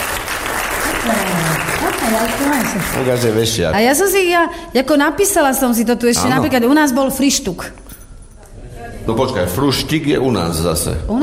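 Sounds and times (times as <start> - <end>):
audience applauding contestants in a word-guessing game: 0.0 - 3.6
speech: 2.1 - 7.9, 9.0 - 11.2.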